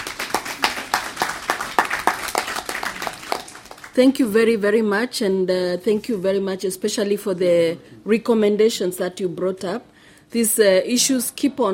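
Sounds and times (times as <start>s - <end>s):
audience clapping: 0.0s - 4.0s
speech: 4.0s - 11.7s.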